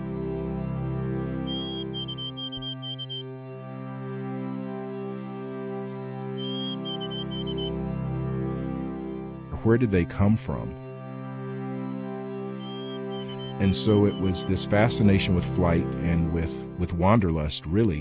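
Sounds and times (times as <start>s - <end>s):
white-throated sparrow singing its whistled song: 0.2s - 3.5s, 4.9s - 8.6s, 11.2s - 15.6s
speech: 9.6s - 10.8s, 13.6s - 18.0s.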